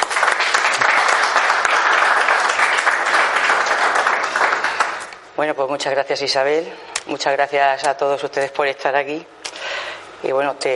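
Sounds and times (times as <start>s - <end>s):
audience applause: 0.0s - 5.2s
speech: 5.4s - 9.4s, 10.2s - 10.7s.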